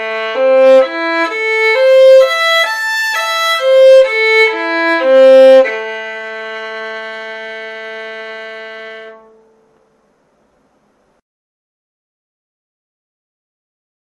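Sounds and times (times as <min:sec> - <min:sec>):
A minor scale arpeggios: 0:00.0 - 0:09.8.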